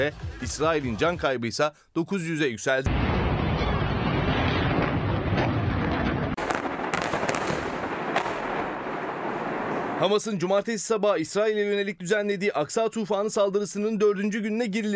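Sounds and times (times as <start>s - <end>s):
speech: 0.0s - 3.1s, 10.0s - 14.9s
bombardment explosions: 2.9s - 10.2s.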